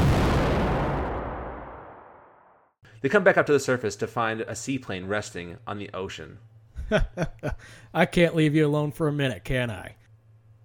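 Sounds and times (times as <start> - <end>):
ship exploding into pieces: 0.0 - 2.6
speech: 3.0 - 10.0
laughter: 6.8 - 7.6.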